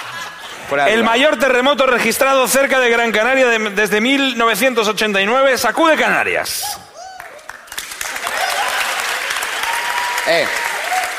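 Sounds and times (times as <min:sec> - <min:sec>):
speech: 0:00.7 - 0:06.9, 0:10.3 - 0:10.6
audience applause: 0:07.1 - 0:11.1.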